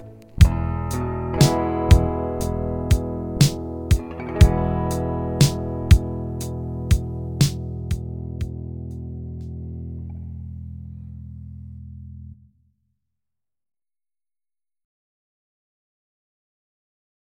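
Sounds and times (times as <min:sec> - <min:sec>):
bass playing notes E D A E: 0:00.0 - 0:12.5.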